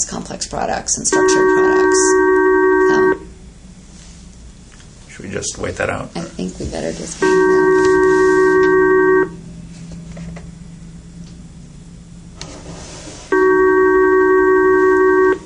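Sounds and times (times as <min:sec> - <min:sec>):
speech: 0:00.3 - 0:02.4, 0:05.2 - 0:07.6
telephone ringing: 0:01.1 - 0:03.3, 0:07.2 - 0:09.4, 0:13.3 - 0:15.4.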